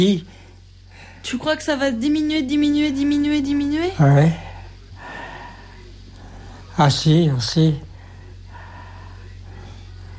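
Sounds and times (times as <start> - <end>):
speech: 0.0 - 0.4, 1.2 - 4.5, 6.8 - 7.9
low hum: 0.0 - 10.1
heavy laboured breathing: 4.3 - 6.7, 7.8 - 10.1.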